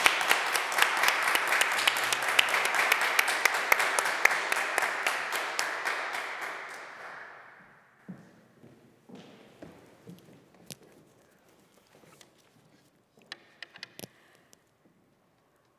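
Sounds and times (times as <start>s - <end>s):
audience applause in chapel: 0.0s - 7.6s.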